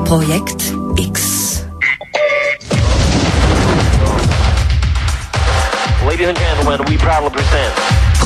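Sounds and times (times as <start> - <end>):
speech: 0.1 - 1.7, 6.1 - 8.2
explosion sound effect: 2.6 - 5.6.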